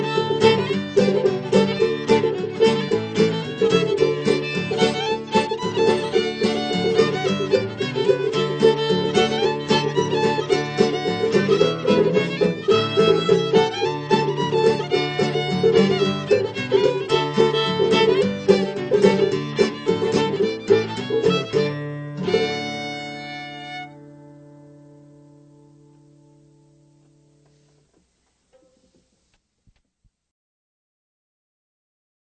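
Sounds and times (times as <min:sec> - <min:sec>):
banjo: 0:00.0 - 0:23.9.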